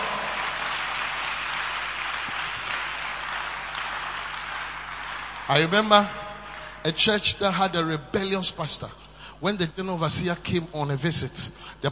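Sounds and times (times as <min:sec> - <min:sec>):
audience clapping: 0:00.0 - 0:07.0
speech: 0:05.5 - 0:06.2, 0:06.8 - 0:11.9.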